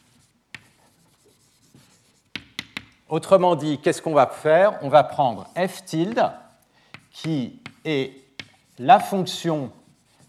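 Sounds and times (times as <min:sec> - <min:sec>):
marker scratching on a board during a lesson: 0:00.0 - 0:02.9, 0:05.2 - 0:10.2
marker tapping on a board: 0:00.5 - 0:00.8, 0:01.4 - 0:03.0, 0:06.0 - 0:09.2
speech: 0:03.1 - 0:06.4, 0:07.2 - 0:08.2, 0:08.8 - 0:09.8.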